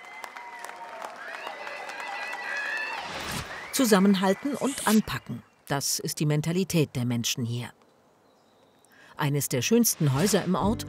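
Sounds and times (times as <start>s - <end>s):
villagers cheering and whooping: 0.0s - 3.8s
villagers clapping: 0.0s - 4.9s
speech: 3.8s - 7.8s, 9.2s - 10.8s.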